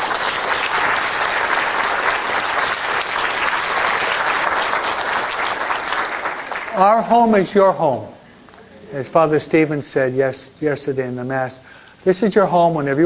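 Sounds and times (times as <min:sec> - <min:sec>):
audience applause: 0:00.0 - 0:07.5
speech: 0:06.8 - 0:08.1, 0:08.9 - 0:13.0.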